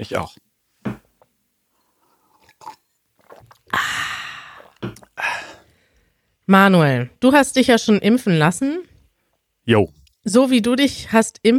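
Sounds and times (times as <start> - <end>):
speech: 0.0 - 0.4, 6.5 - 8.9, 9.6 - 11.5
person sipping water: 1.7 - 6.2
gulping and swallowing: 2.2 - 5.7.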